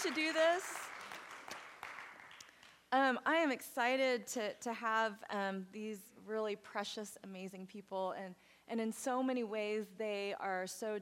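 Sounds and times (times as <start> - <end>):
speech: 0.0 - 0.9, 2.9 - 11.0
audience clapping: 0.0 - 2.8.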